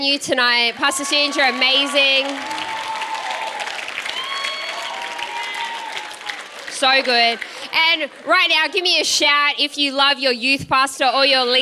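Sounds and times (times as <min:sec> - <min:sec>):
speech: 0:00.0 - 0:02.7, 0:06.8 - 0:11.5
audience applause at a church youth night thanking the venue team: 0:00.4 - 0:09.4.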